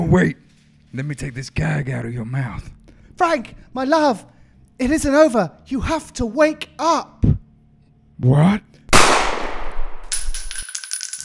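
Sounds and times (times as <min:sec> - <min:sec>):
speech: 0:00.0 - 0:07.4, 0:08.2 - 0:09.2
gunshot in a radio drama: 0:09.0 - 0:10.1.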